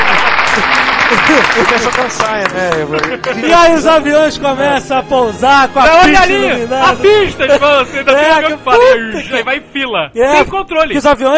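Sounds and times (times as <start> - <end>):
applause: 0.0 - 3.8
laughter: 0.0 - 4.8, 6.0 - 9.6
speech: 0.6 - 11.3.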